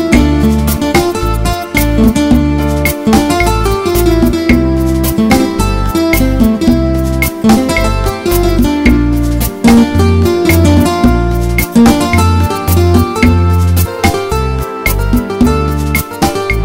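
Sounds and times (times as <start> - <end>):
Spanish guitar: 0.0 - 16.6.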